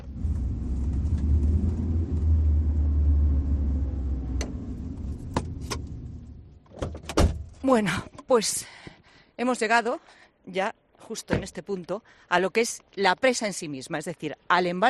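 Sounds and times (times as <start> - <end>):
car driving: 0.0 - 6.7
speech: 7.6 - 8.8, 9.4 - 14.8.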